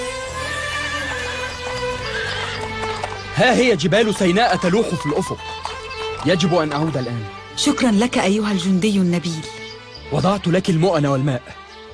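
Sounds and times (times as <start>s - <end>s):
horses whinnying and neighing: 0.1s - 3.1s
speech: 3.4s - 5.7s, 6.3s - 11.9s.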